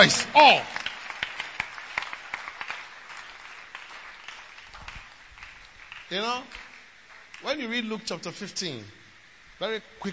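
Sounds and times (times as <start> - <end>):
speech: 0.0 - 0.8, 6.1 - 6.6, 7.4 - 9.0, 9.6 - 10.1
weak audience clapping: 0.0 - 7.6.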